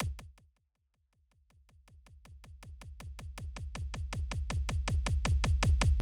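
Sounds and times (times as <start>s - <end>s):
kick drum: 0.0s - 0.4s, 1.6s - 6.0s.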